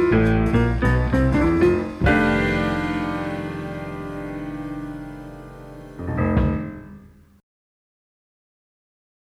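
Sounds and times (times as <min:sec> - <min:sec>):
guitar playing blues in F: 0:00.0 - 0:06.6
horns playing blues in F: 0:01.8 - 0:06.0.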